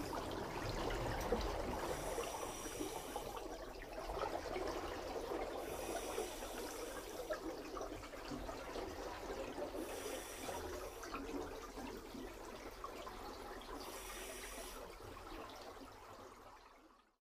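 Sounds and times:
man diving and swimming underwater: 0:00.0 - 0:16.3.

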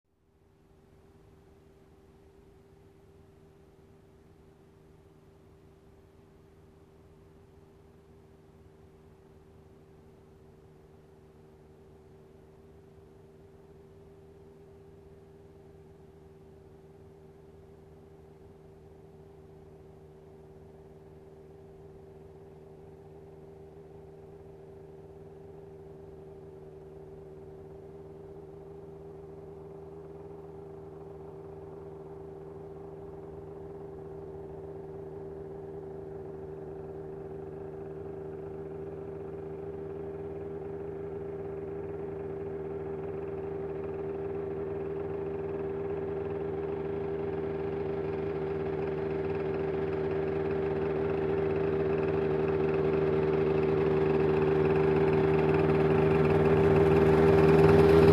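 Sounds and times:
motorcycle approaching and turning off: 0:13.6 - 0:58.1.

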